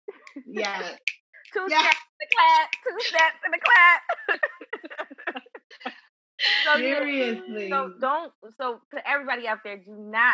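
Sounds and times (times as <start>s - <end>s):
laughter: 0.1s - 1.0s, 2.8s - 7.8s
finger snap: 0.1s - 3.8s
speech: 0.4s - 10.3s.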